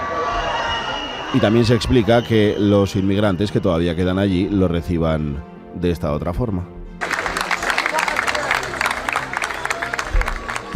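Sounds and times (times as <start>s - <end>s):
crowd booing: 0.0s - 2.7s, 7.0s - 10.7s
speech: 1.3s - 6.8s
crowd clapping: 7.0s - 10.7s.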